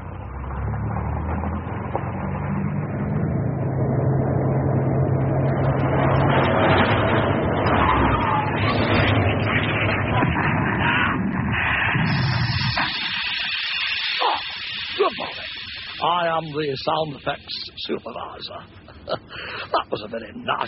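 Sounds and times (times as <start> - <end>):
old car engine rumble: 0.0 - 20.6
thin high hiss: 12.0 - 17.9
speech: 16.4 - 20.6.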